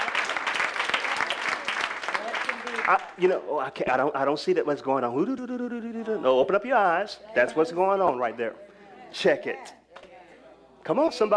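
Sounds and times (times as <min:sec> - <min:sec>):
audience clapping hands: 0:00.0 - 0:03.3
speech: 0:02.9 - 0:09.8, 0:10.8 - 0:11.3.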